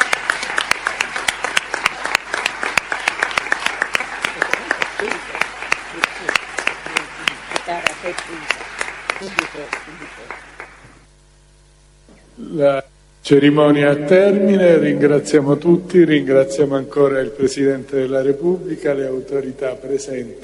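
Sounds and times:
audience applause: 0:00.0 - 0:11.1
speech: 0:08.1 - 0:08.6, 0:09.2 - 0:10.6, 0:12.4 - 0:20.4.

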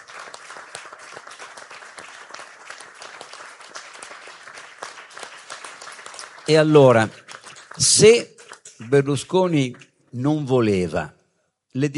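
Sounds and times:
crowd applause: 0:00.0 - 0:08.6
speech: 0:06.5 - 0:07.2, 0:07.8 - 0:11.9.

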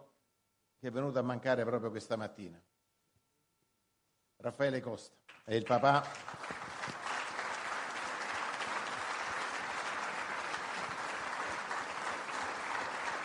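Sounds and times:
speech: 0:00.8 - 0:02.7, 0:04.4 - 0:06.5
audience applause at a political event: 0:05.6 - 0:13.2.

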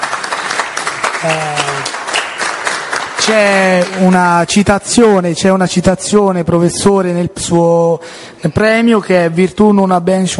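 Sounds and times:
audience applause: 0:00.0 - 0:04.2
speech: 0:01.2 - 0:02.0, 0:03.2 - 0:10.3.

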